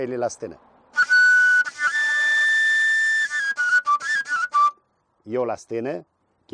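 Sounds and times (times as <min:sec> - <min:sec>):
speech: 0:00.0 - 0:00.7, 0:05.3 - 0:06.5
tilinca shepherd's pipe playing: 0:01.0 - 0:04.8.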